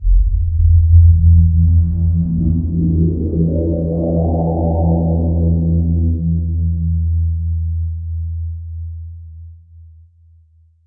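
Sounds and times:
atmospheric visual effects sounds: 0.0s - 7.1s.

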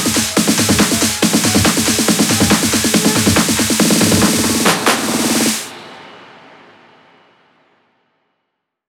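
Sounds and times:
hand claps at 140 BPM: 0.0s - 5.7s
hands up and trance drum fills: 0.0s - 6.2s.

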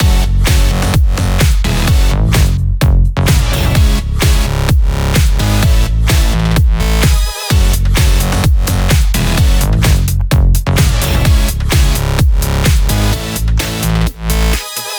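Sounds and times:
128 BPM music mix: 0.0s - 14.9s.

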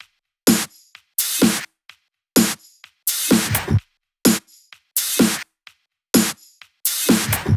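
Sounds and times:
drum kit: 0.5s - 1.7s, 2.4s - 5.5s, 6.2s - 7.5s.

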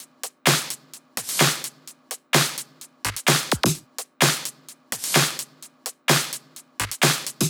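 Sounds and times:
drums: 0.0s - 7.4s.

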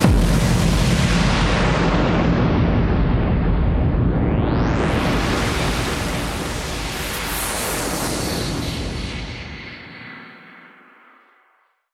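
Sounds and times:
impact hits: 0.0s - 5.4s
explosions: 0.0s - 9.6s.

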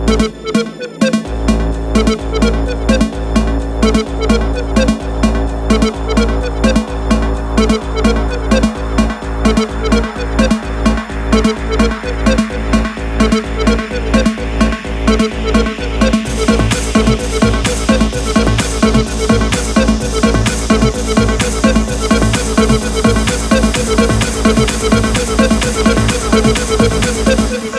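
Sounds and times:
128BPM fat long melody fills in A: 0.1s - 27.6s.

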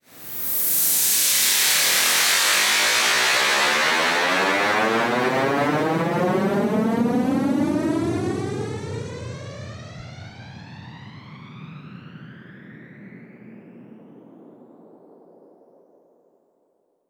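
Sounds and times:
uplifter riser: 0.1s - 11.5s.

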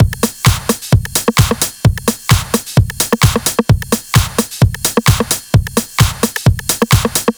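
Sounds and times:
130 BPM drum kit: 0.0s - 7.3s.

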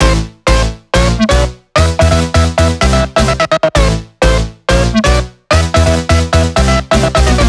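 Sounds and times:
melody: 0.0s - 7.4s.

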